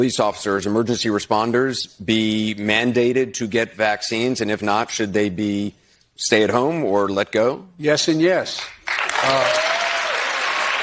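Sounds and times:
speech: 0.0s - 9.7s
applause: 8.6s - 10.8s.

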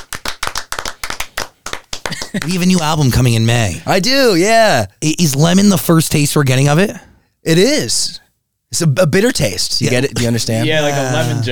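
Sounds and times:
hand clapping: 0.0s - 3.3s
laughter: 2.0s - 3.0s, 9.8s - 11.4s
speech: 2.1s - 11.4s.

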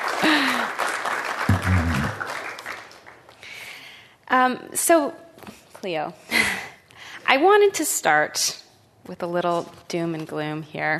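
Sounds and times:
live audience applause welcoming a guest at the Commonwealth Club: 0.0s - 3.2s
speech: 4.4s - 5.2s, 5.8s - 6.3s, 7.3s - 10.9s.

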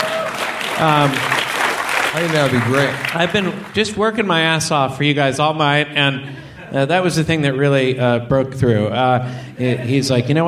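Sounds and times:
audience applause: 0.0s - 4.0s
speech: 0.8s - 1.3s, 2.1s - 10.4s.

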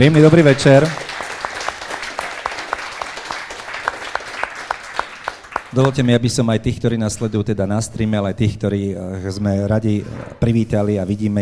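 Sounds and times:
speech: 0.0s - 1.0s, 5.8s - 11.4s
audience applause: 0.0s - 6.2s.

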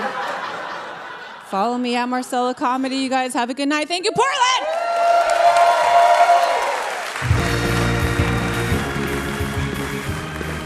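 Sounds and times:
laughter: 0.0s - 1.8s
speech: 1.5s - 4.6s
live theater audience applauding and cheering: 4.4s - 10.6s
music with deep bass line: 7.2s - 10.6s.

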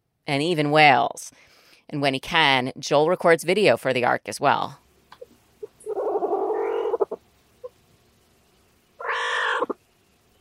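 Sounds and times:
speech: 0.3s - 4.8s
northern guina wildcat chirruping: 5.6s - 7.2s, 9.0s - 9.8s.

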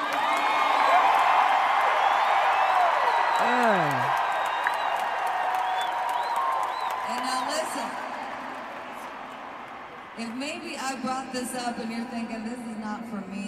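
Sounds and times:
large crowd yelling and cheering: 0.0s - 10.8s
person whooping: 3.1s - 4.2s
speech: 11.0s - 13.4s.

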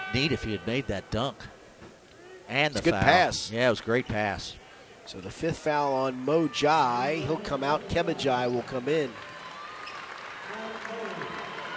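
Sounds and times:
speech: 0.1s - 1.6s, 2.5s - 9.3s
crowd applause at a basketball game: 7.3s - 11.7s.

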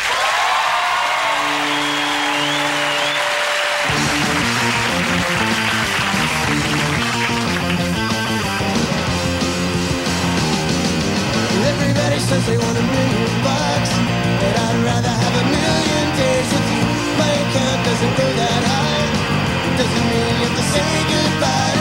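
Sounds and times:
studio audience applause and cheering on Conan O'Brien's late-night show in New York City: 0.0s - 11.5s
band music on a late-night talk show: 1.0s - 21.7s.

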